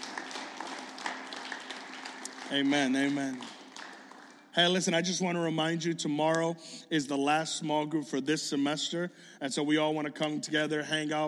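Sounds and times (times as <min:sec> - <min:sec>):
audience clapping hands: 0:00.0 - 0:04.9
speech: 0:02.5 - 0:03.6, 0:04.6 - 0:11.2.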